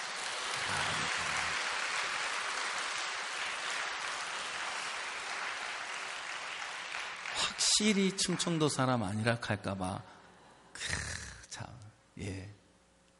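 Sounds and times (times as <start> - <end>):
audience applause: 0.0 - 8.9
speech: 7.6 - 10.1, 10.8 - 11.0, 12.2 - 12.6.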